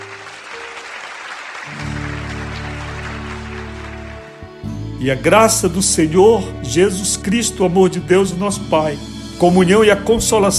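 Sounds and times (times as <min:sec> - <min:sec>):
audience applause: 0:00.0 - 0:04.6
speech: 0:05.0 - 0:10.5.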